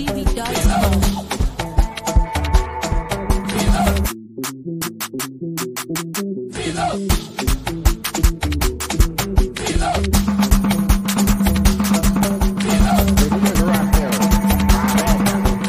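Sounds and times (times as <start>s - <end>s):
dance beat: 0.0s - 4.1s, 7.2s - 15.6s.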